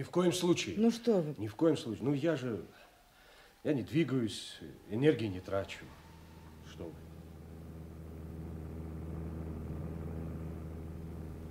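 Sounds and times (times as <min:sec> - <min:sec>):
speech: 0:00.0 - 0:02.9, 0:03.6 - 0:06.0, 0:06.7 - 0:07.1
airplane engine approaching: 0:04.6 - 0:11.4.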